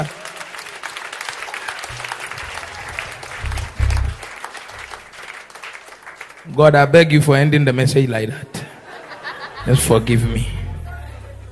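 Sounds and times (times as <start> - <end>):
crowd clapping: 0.0 - 6.6
laughter: 1.8 - 4.2, 8.6 - 11.4
low hum: 1.9 - 5.1, 9.6 - 11.4
speech: 6.6 - 8.5, 9.6 - 10.6.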